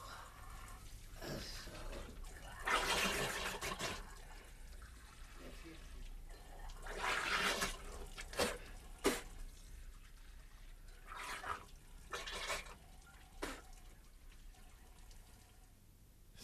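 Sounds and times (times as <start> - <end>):
running tap water with head rinsed under it: 0.1 - 15.8.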